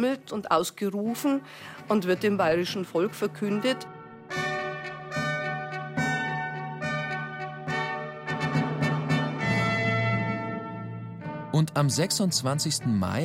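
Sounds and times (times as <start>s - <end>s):
speech: 0.0s - 4.4s, 11.6s - 13.2s
church bells ringing through the streets of Munich: 4.3s - 10.8s.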